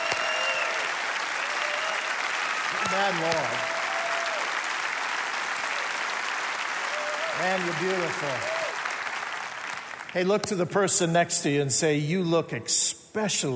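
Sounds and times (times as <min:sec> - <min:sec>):
audience applause: 0:00.0 - 0:10.2
speech: 0:02.9 - 0:03.8, 0:07.4 - 0:08.6, 0:10.1 - 0:13.5.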